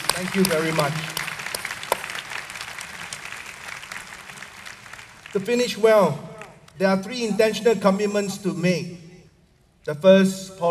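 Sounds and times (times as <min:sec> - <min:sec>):
audience applauding: 0:00.0 - 0:06.6
speech: 0:00.2 - 0:01.2, 0:05.3 - 0:09.0, 0:09.8 - 0:10.7.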